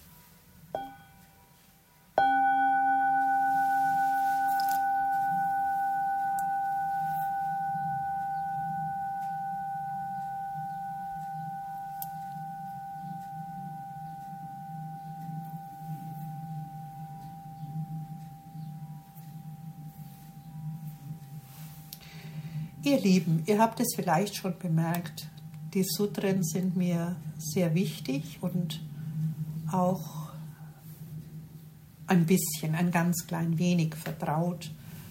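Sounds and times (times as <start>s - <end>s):
mindfulness bell ringing: 0.8s - 1.5s, 2.2s - 23.6s
speech: 22.8s - 28.8s, 29.7s - 30.2s, 32.1s - 34.8s.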